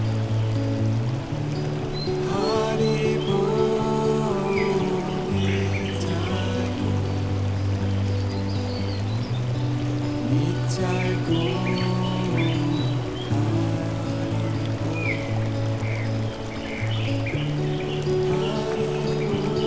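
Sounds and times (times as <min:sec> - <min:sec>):
gentle relaxing melody: 0:00.0 - 0:19.6.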